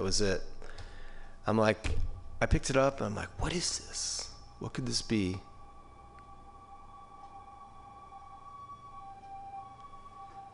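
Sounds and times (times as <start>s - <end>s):
speech: 0.0s - 0.5s, 1.5s - 5.5s
siren played from a record: 4.4s - 10.5s.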